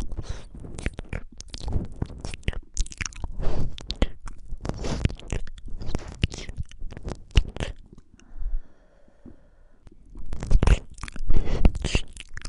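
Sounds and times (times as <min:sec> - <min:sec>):
wet slurping and licking on a microphone: 0:00.0 - 0:08.2, 0:10.1 - 0:12.4.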